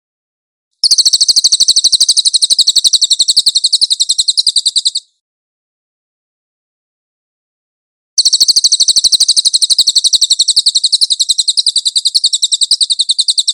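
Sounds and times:
Cililin bird giving a high chattering trill: 0.8s - 5.1s, 8.2s - 13.5s.

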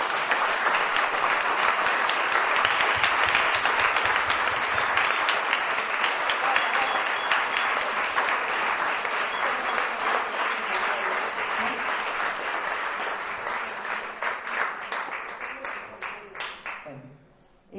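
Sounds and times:
audience applause: 0.0s - 16.8s.

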